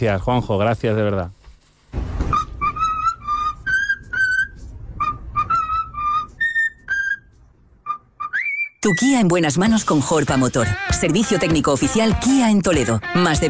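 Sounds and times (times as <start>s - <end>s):
speech: 0.0s - 2.0s, 8.9s - 13.4s
low rumble: 2.0s - 7.9s
cockatoo whistling a birthday song: 2.3s - 9.2s.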